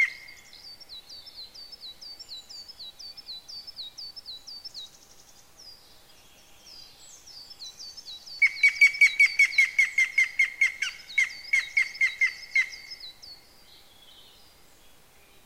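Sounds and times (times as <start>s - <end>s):
yamagera bird calling: 0.0s - 0.5s, 8.4s - 13.1s.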